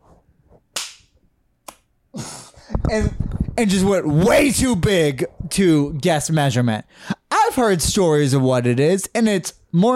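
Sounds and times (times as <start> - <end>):
sharp hand claps: 0.8 - 1.9
speech: 2.9 - 9.9.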